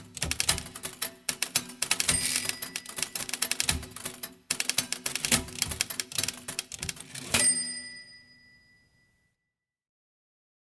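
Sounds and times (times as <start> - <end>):
typewriter sonata: 0.0 - 8.0.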